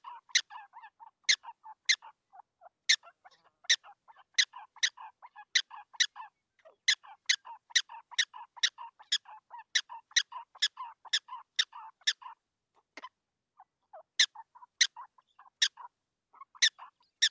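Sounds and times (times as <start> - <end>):
prairie dog chirping: 0.0 - 12.4, 13.6 - 17.2.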